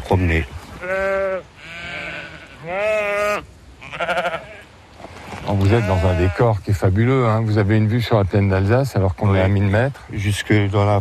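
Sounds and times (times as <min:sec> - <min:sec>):
speech: 0:00.1 - 0:01.5, 0:02.6 - 0:04.4, 0:05.5 - 0:11.0
sheep bleating: 0:00.8 - 0:04.7, 0:05.5 - 0:07.3.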